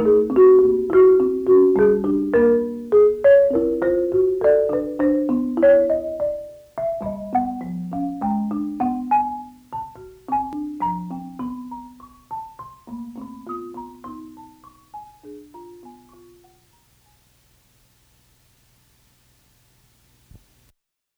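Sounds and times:
marimba interlude: 0.0 - 16.9.

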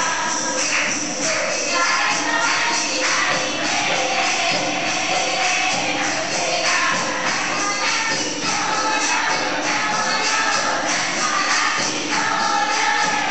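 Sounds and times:
women singing in a temple in Ram Jhula Rishikesh: 0.0 - 13.2.

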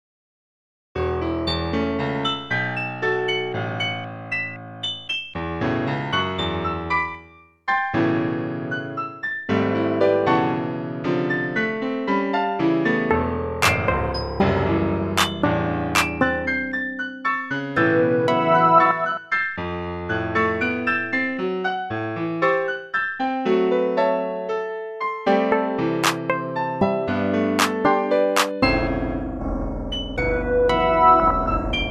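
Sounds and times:
irritating piano miniature: 1.0 - 31.9.

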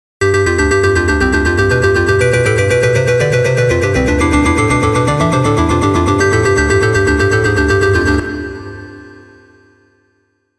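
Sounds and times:
insistent electronic music: 0.2 - 8.5.

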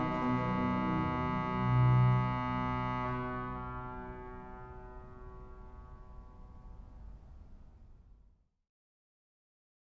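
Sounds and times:
organ chorale variations in canon at the octave: 0.0 - 6.1.

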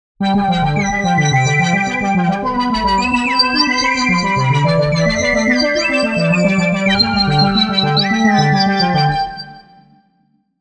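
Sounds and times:
fantastical electronica: 0.2 - 9.6.

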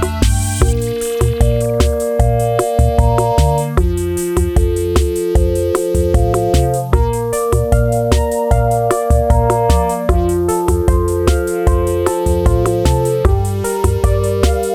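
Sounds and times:
arpeggio: 0.0 - 14.7.

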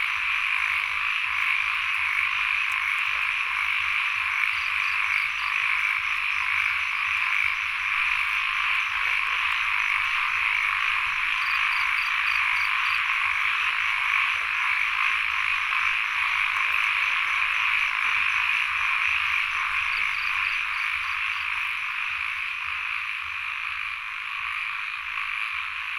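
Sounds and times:
frogs in Sen Monorom Cambodia: 0.0 - 25.9
insects in Sen Monorom Cambodia: 0.0 - 25.9.

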